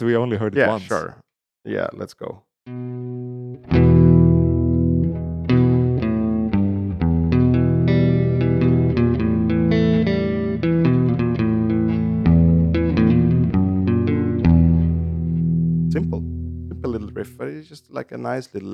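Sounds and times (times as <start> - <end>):
speech: 0.0 - 2.8, 17.4 - 18.7
electric guitar riff with chorus-like distorted tone: 2.7 - 16.9.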